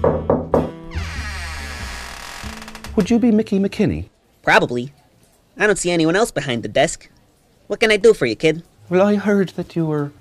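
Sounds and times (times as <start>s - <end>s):
knocking on an office door: 0.0s - 0.8s
speech: 3.0s - 5.0s, 5.6s - 10.1s.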